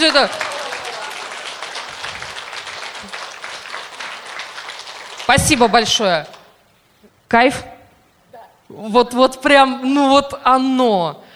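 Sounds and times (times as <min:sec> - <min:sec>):
speech: 0:00.0 - 0:00.5, 0:05.3 - 0:06.4, 0:07.3 - 0:07.7, 0:08.7 - 0:11.2
audience applauding: 0:00.0 - 0:06.4.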